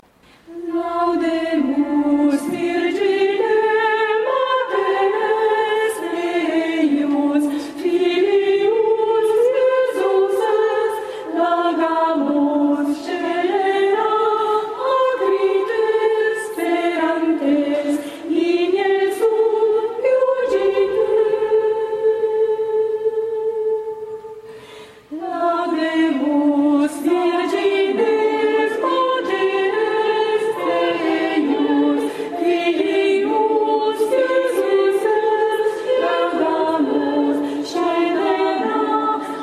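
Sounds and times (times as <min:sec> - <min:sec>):
choir singing: 0:00.5 - 0:24.5, 0:25.1 - 0:39.4.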